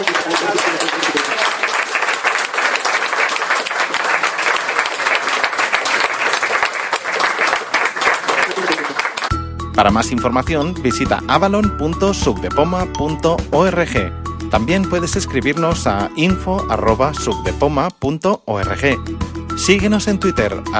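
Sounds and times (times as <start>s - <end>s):
audience applause: 0.0s - 9.3s
speech: 9.8s - 20.7s.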